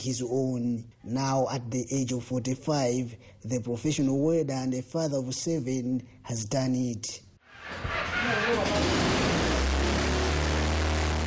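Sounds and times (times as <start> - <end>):
speech: 0.0 - 9.0
homemade helicopter engine starting up: 7.6 - 11.2.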